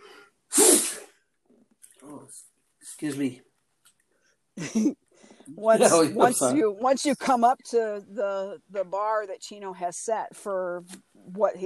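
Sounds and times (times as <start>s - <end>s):
person sneezing: 0.5s - 1.1s
speech: 2.3s - 3.5s, 4.6s - 11.6s
person breathing: 5.2s - 5.5s.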